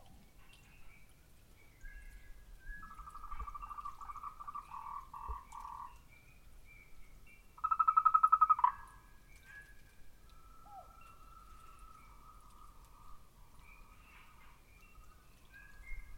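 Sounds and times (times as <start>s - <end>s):
frogs giving rapid pulsed trilling croaks: 1.8s - 6.1s, 7.6s - 16.1s.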